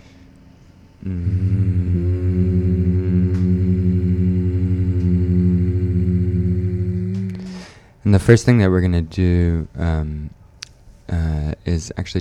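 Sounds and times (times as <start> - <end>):
speech: 1.0 - 1.4, 8.1 - 10.4, 11.1 - 12.1
humming with lips closed: 1.0 - 8.0.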